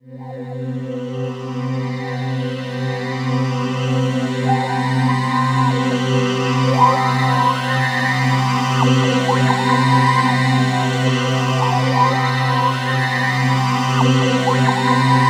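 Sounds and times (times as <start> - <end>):
ethereal ambient atmosphere: 0.2 - 15.2.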